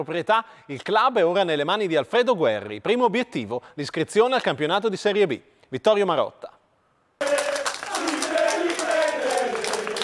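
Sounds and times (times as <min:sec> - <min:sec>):
speech: 0:00.0 - 0:06.5
crowd applause: 0:07.2 - 0:10.0
voices cheering: 0:07.2 - 0:10.0.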